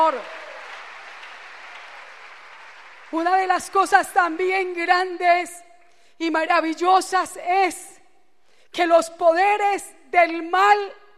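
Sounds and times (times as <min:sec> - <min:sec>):
congregation applauding during a church service: 0:00.0 - 0:04.2
speech: 0:00.1 - 0:00.4, 0:03.1 - 0:05.6, 0:06.2 - 0:07.9, 0:08.7 - 0:11.0.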